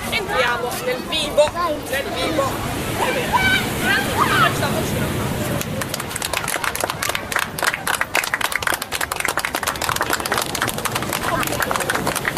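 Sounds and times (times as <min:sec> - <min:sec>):
speech: 0:00.6 - 0:05.4
audience applause: 0:05.6 - 0:12.3.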